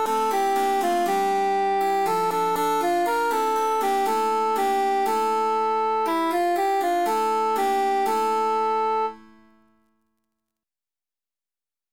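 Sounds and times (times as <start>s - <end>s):
emphasized cantus melody: 0.0s - 9.3s.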